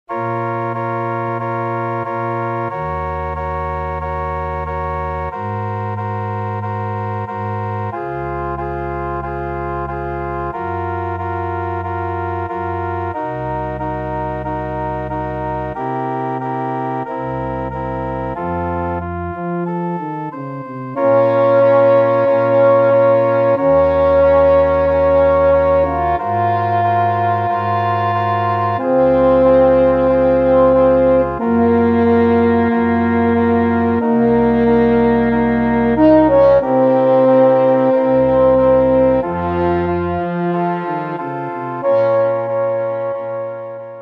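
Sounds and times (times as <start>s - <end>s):
horn solo: 0.1s - 44.0s.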